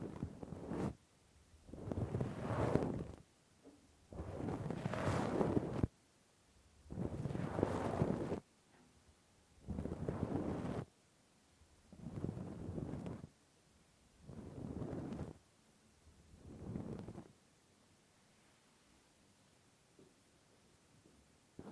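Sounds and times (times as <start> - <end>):
deep scratching inside an ear with a Q-tip or ear pick: 0.0 - 1.0, 1.6 - 3.3, 4.1 - 5.9, 6.9 - 8.4, 9.6 - 10.9, 11.9 - 13.4, 14.2 - 15.5, 16.3 - 17.4.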